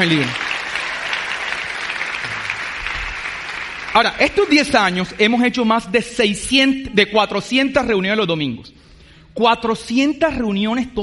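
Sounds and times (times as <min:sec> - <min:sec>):
speech: 0:00.0 - 0:00.5, 0:04.0 - 0:08.8, 0:09.4 - 0:11.0
applause: 0:00.0 - 0:04.9.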